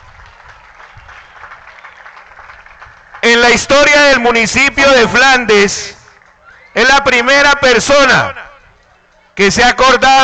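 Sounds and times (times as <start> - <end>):
audience applause at a municipal accountability event in Flandes, Tolima: 0.0 - 4.3, 5.6 - 6.8
speech: 3.3 - 6.0, 6.8 - 8.4, 9.4 - 10.2.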